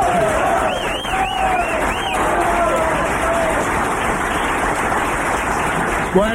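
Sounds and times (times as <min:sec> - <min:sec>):
crowd applauding: 0:00.0 - 0:06.3
crowd whistles: 0:00.6 - 0:02.2.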